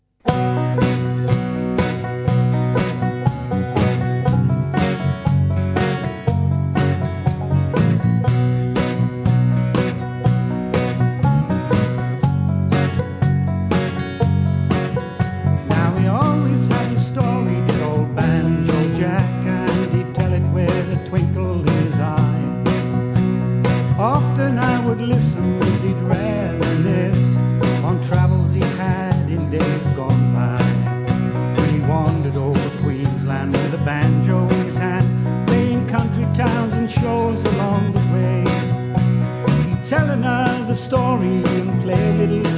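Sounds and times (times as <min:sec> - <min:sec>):
banjo: 0:00.2 - 0:42.5.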